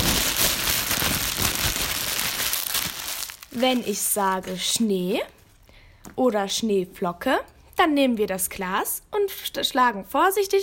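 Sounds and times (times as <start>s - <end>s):
plastic bag crinkling to imitate a crackling oven fire: 0.0s - 4.8s
speech: 3.6s - 5.4s, 6.1s - 10.6s.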